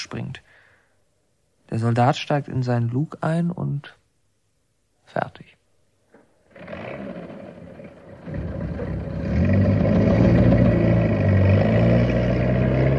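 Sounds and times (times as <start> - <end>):
speech: 0.0 - 0.4, 1.7 - 4.0, 5.1 - 5.6
military tank engine rumbling as it drives off: 6.6 - 12.9.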